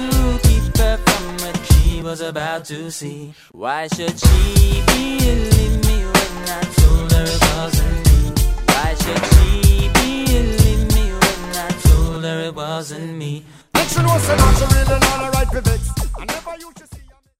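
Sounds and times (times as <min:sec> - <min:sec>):
retro drum beat: 0:00.0 - 0:02.0, 0:03.9 - 0:12.2, 0:13.8 - 0:17.3.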